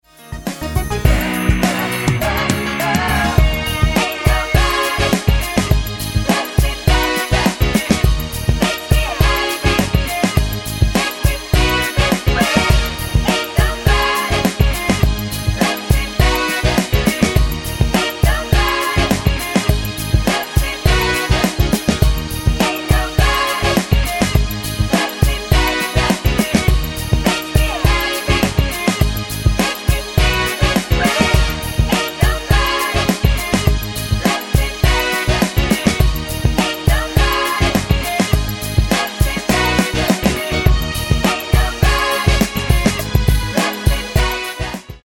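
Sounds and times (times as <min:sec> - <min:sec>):
choir: 0:01.1 - 0:10.4, 0:11.0 - 0:28.9, 0:29.6 - 0:44.9.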